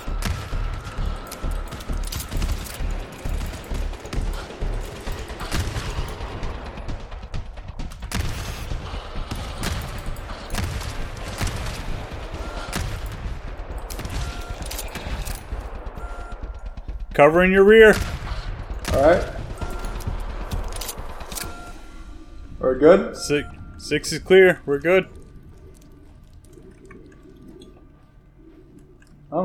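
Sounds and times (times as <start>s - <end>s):
automated turret gunfire in the video game GTFO: 0.0s - 22.3s
heavy low booms: 0.0s - 29.4s
speech: 17.2s - 18.1s, 19.0s - 19.3s, 22.8s - 25.2s.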